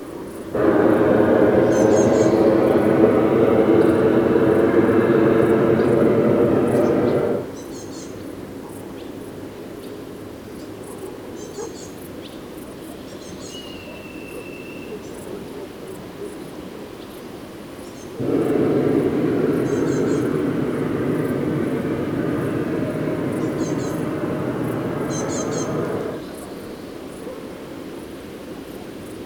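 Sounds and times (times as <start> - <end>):
Black Kite Milvus migrans thin whistled calls: 0.6 - 7.5, 18.4 - 26.3.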